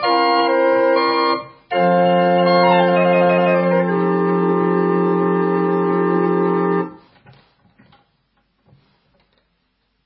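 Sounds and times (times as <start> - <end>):
honky-tonk train piano music: 0.0 - 6.9.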